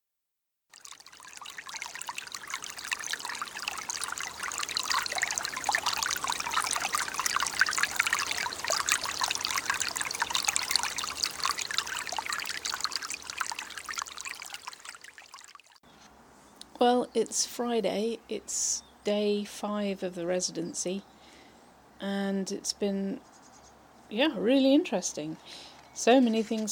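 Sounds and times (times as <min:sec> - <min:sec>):
water trickling and bouncing in a stream: 0:00.7 - 0:15.8
speech: 0:16.8 - 0:21.1, 0:22.0 - 0:23.3, 0:24.1 - 0:26.7.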